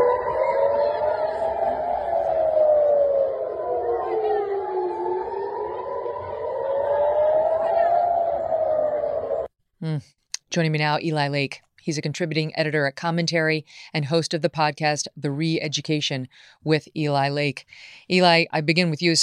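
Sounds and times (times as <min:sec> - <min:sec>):
air raid sirens wailing: 0:00.0 - 0:09.6
speech: 0:10.6 - 0:19.2.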